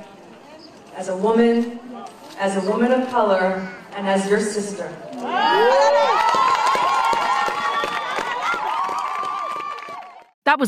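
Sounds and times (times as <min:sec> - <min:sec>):
speech: 0:01.0 - 0:06.2, 0:10.5 - 0:10.6
large crowd cheering: 0:05.1 - 0:10.4.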